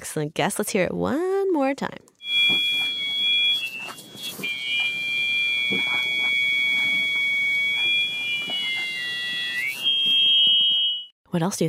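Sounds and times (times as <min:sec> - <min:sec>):
speech: 0:00.0 - 0:02.7, 0:11.3 - 0:11.6
hearing aid feedback squeal out of ear: 0:02.2 - 0:11.1.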